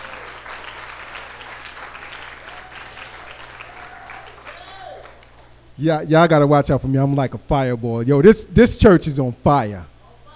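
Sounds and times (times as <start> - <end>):
audience applause: 0.0 - 5.5
whistles and cheers: 2.0 - 5.2
speech: 5.8 - 9.9.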